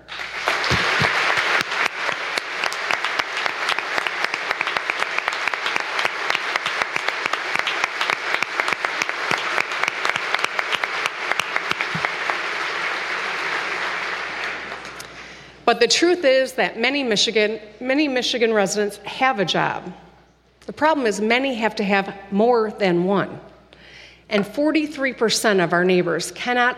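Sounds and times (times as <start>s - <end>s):
crowd applause: 0.0s - 15.5s
speech: 15.7s - 20.0s, 20.8s - 23.4s, 24.3s - 26.7s.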